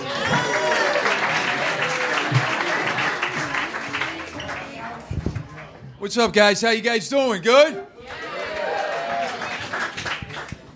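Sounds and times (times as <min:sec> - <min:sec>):
comedy club audience cheering and voices: 0:00.0 - 0:03.4, 0:08.1 - 0:09.8
comedy club audience at The Stand applauding a guest comedian: 0:00.0 - 0:04.8, 0:08.1 - 0:10.7
speech: 0:06.0 - 0:07.9.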